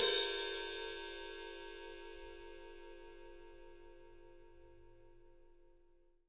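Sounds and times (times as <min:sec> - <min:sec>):
ride cymbal: 0:00.0 - 0:03.5.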